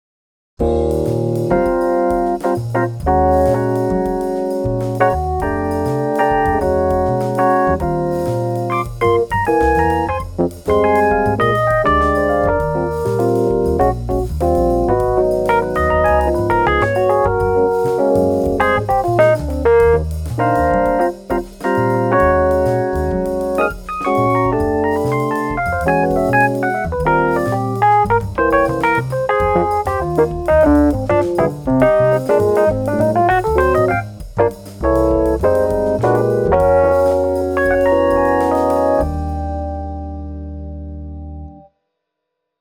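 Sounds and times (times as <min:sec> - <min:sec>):
electric piano: 0:00.6 - 0:41.7.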